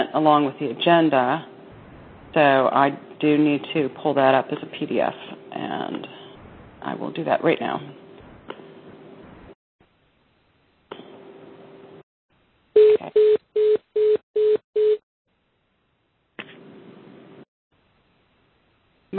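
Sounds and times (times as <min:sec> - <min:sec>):
speech: 0:00.1 - 0:01.5, 0:02.3 - 0:06.2, 0:06.8 - 0:08.0
telephone beeps: 0:12.8 - 0:15.0.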